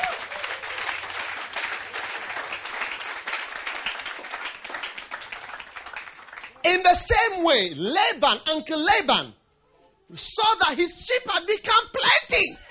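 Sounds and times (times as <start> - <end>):
audience applause: 0.0 - 6.6
speech: 6.8 - 9.4, 10.1 - 12.6.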